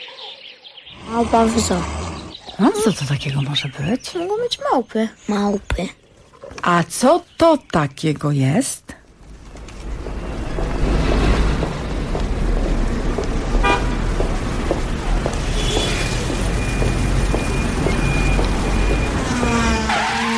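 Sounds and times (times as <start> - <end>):
street traffic with cars driving past: 0.9 - 3.0, 9.3 - 20.3
speech: 1.1 - 2.0, 2.6 - 8.9
woman walking in high heels on the pavement: 9.6 - 19.2
car horn tooting: 13.6 - 14.0, 15.5 - 16.2.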